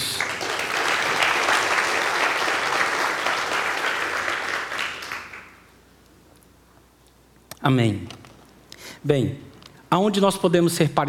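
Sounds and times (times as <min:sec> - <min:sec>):
audience applause: 0:00.0 - 0:05.6
speech: 0:07.6 - 0:08.2, 0:09.0 - 0:11.0.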